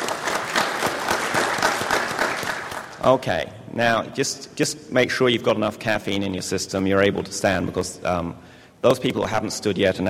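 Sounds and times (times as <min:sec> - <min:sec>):
audience applause at a CF United event: 0:00.0 - 0:03.0
speech: 0:03.0 - 0:10.0.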